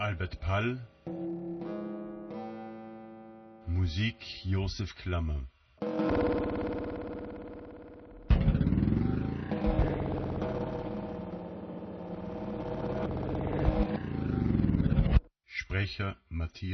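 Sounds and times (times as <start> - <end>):
speech: 0.2 - 1.0, 3.8 - 6.9, 15.9 - 16.7
old loud car engine driving: 8.2 - 15.3.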